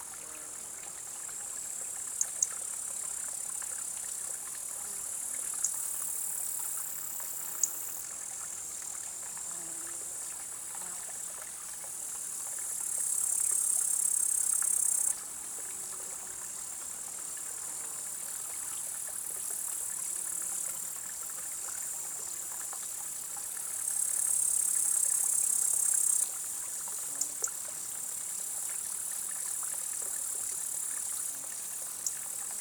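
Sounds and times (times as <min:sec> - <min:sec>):
background insect chorus: 0:00.1 - 0:32.6
upland green bush-cricket stridulation: 0:05.6 - 0:08.0, 0:12.8 - 0:15.6, 0:18.5 - 0:32.6.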